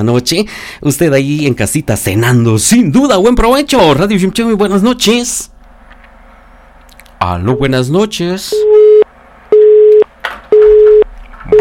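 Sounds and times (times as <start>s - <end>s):
speech: 0.0s - 5.5s, 7.2s - 8.8s
telephone busy signal after a radio caller hung up: 8.5s - 11.6s.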